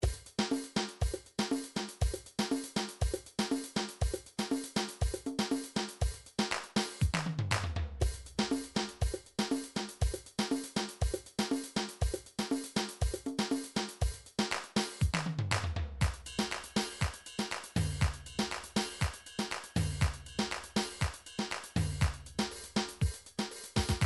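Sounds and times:
malfuf drum rhythm: 0.0 - 24.0.

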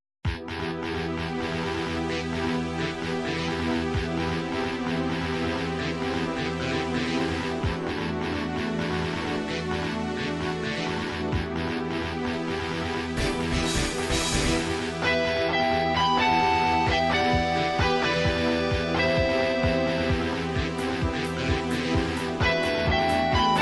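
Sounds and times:
title screen techno remix: 0.3 - 23.6.

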